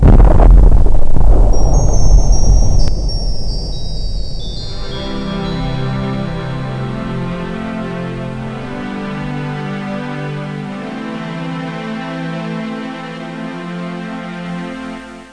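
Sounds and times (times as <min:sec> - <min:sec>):
earth explosion: 0:00.0 - 0:05.8.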